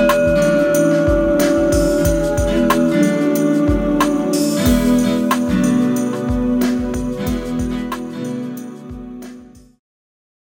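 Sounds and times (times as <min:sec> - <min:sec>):
singing bowls used for massage: 0:00.0 - 0:07.5.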